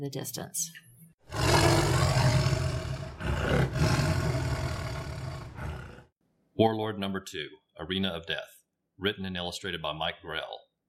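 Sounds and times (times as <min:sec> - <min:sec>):
speech: 0:00.0 - 0:02.2, 0:06.6 - 0:10.6
big cats roaring: 0:01.3 - 0:06.1.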